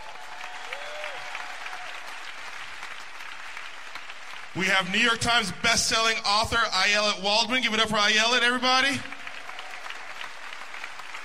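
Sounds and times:
audience applause: 0.0 - 5.0, 9.0 - 11.2
speech: 4.6 - 9.1.

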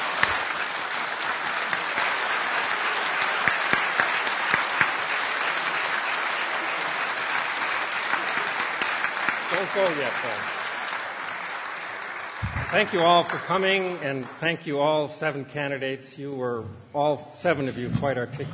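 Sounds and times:
audience applause: 0.0 - 14.5
speech: 9.6 - 10.6, 12.7 - 18.5.

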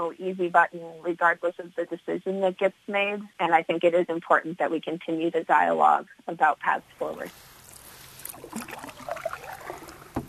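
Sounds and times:
speech: 0.0 - 7.5
boat paddle splashing water on a reservoir: 7.3 - 10.2.

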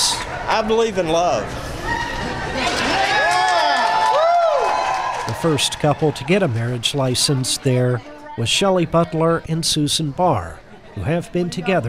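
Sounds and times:
speech: 0.5 - 1.6, 5.3 - 11.8
crowd cheering: 1.8 - 7.8
high whoops: 2.9 - 5.3.

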